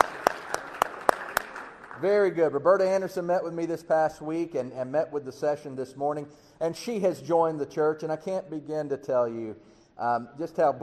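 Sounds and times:
audience clapping: 0:00.0 - 0:02.5
speech: 0:02.0 - 0:10.8.

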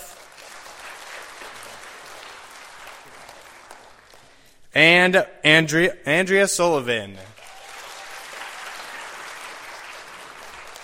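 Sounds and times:
audience applause: 0:00.0 - 0:04.4, 0:07.4 - 0:10.8
speech: 0:04.8 - 0:07.3.

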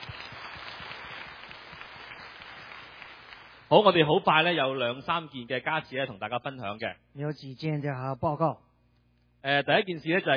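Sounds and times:
audience applause welcoming a guest: 0:00.0 - 0:03.8
speech: 0:03.7 - 0:08.6, 0:09.4 - 0:10.3.

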